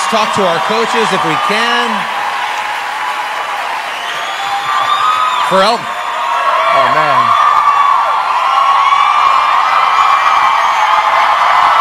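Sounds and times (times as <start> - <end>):
studio audience applauding: 0.0 - 11.7
speech: 0.1 - 2.2, 5.5 - 6.0, 6.7 - 7.4.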